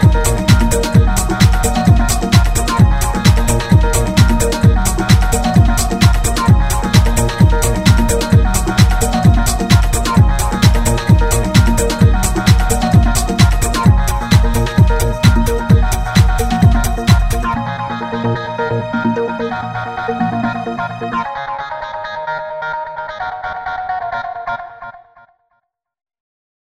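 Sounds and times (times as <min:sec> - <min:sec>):
satin ambience: 0:00.0 - 0:21.3.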